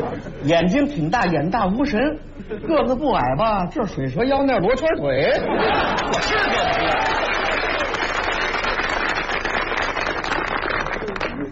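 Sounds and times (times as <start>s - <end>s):
speech: 0.4s - 7.0s
laughter: 5.2s - 7.9s
large audience applause: 6.0s - 11.4s.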